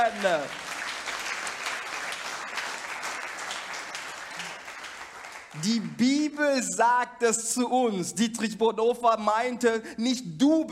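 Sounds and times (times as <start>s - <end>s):
speech: 0.0s - 0.6s, 5.5s - 10.7s
audience applause: 0.0s - 6.0s.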